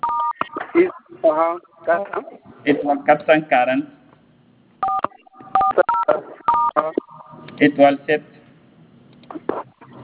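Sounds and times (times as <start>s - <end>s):
telephone keypad tone dialing a secret code: 0.0s - 0.5s, 4.8s - 7.4s
speech: 0.7s - 4.0s, 6.8s - 8.4s.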